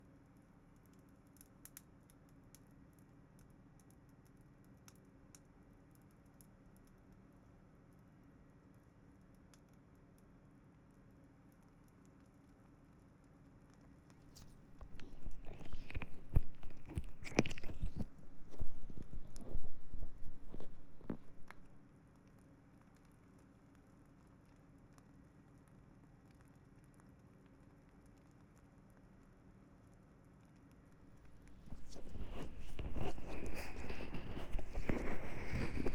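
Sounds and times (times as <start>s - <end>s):
left ear cleaning with an ear pick: 14.4s - 21.8s, 31.1s - 35.9s.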